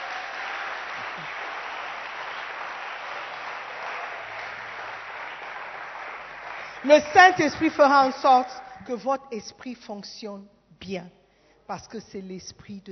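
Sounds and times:
church congregation clapping in acclaim of the Holy Spirit: 0:00.0 - 0:08.8
speech: 0:06.8 - 0:12.9.

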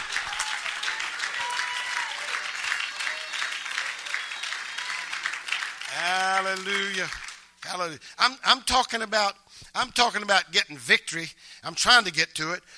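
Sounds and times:
people shouting: 0:00.0 - 0:03.5
audience clapping: 0:00.0 - 0:07.8
speech: 0:06.5 - 0:12.7.

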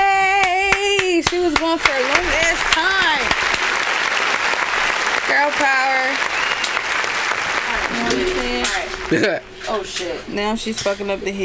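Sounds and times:
applause sound effect: 0:00.7 - 0:09.5
speech: 0:09.1 - 0:11.4.

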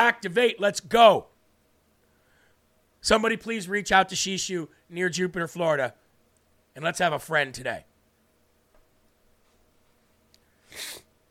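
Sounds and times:
speech: 0:00.0 - 0:01.3, 0:03.0 - 0:06.0, 0:06.8 - 0:07.9
person sniffling: 0:10.5 - 0:11.1.

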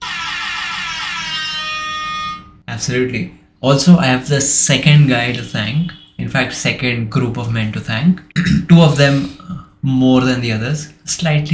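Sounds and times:
air horn sound effect: 0:00.0 - 0:02.6, 0:05.7 - 0:06.2
speech: 0:02.8 - 0:11.5.

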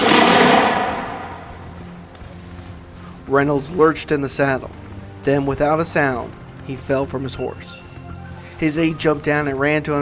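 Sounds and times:
lone rifle shot on a battlefield: 0:00.0 - 0:01.8
speech: 0:03.3 - 0:07.8, 0:08.6 - 0:10.0.

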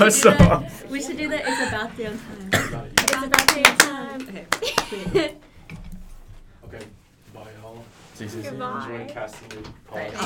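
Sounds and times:
speech: 0:00.0 - 0:05.4, 0:08.2 - 0:10.2
people clapping hands: 0:02.9 - 0:05.3.

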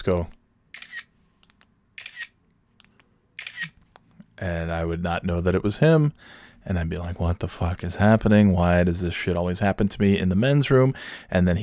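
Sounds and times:
speech: 0:00.0 - 0:00.4, 0:04.4 - 0:11.6
electronic phone camera shutter clicks: 0:00.8 - 0:01.1, 0:02.0 - 0:02.4, 0:03.4 - 0:03.8.

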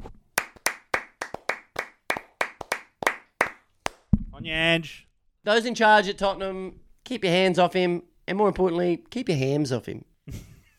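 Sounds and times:
clapping: 0:00.4 - 0:04.0
speech: 0:04.4 - 0:10.4.

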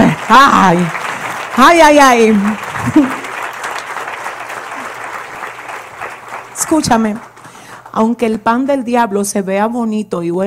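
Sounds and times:
audience clapping: 0:00.0 - 0:08.2
speech: 0:00.3 - 0:01.0, 0:01.6 - 0:03.2, 0:06.7 - 0:07.3, 0:08.0 - 0:10.4.

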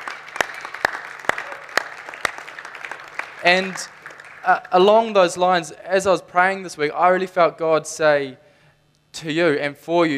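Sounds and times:
church audience applauding: 0:00.0 - 0:05.1
speech: 0:03.4 - 0:08.4, 0:09.2 - 0:10.1.

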